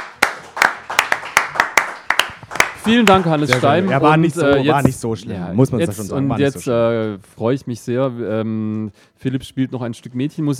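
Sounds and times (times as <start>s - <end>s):
crisp hand claps: 0.0s - 4.1s
speech: 2.8s - 10.5s.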